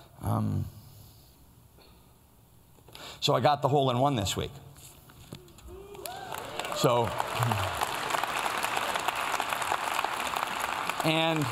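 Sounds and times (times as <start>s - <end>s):
speech: 0.4s - 0.8s, 3.2s - 4.7s, 6.8s - 7.8s, 11.0s - 11.4s
church congregation applause during a sermon: 5.8s - 11.4s.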